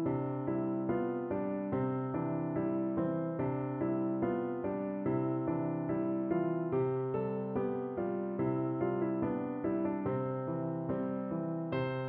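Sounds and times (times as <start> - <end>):
piano: 0.0 - 12.0.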